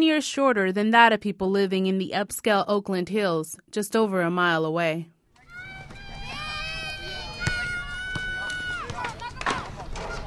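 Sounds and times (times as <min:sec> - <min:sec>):
speech: 0:00.0 - 0:05.2
children squealing and shouting at playground: 0:05.4 - 0:10.2
playground noise hum: 0:05.4 - 0:10.2.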